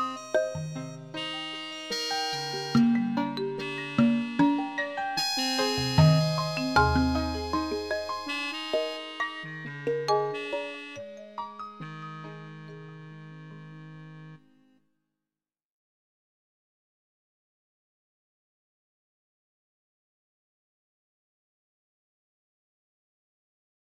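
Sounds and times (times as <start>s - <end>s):
fairground tune: 0.0s - 14.4s.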